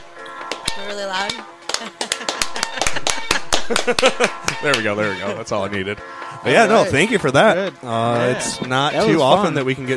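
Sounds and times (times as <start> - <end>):
slow clap: 0.4 - 4.9
speech: 0.8 - 9.9
laughter: 1.7 - 5.8.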